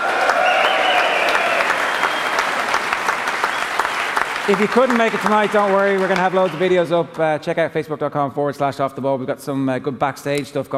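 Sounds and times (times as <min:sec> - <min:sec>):
crowd cheering and whooping: 0:00.0 - 0:04.6
audience applause: 0:00.0 - 0:06.9
speech: 0:04.5 - 0:10.7.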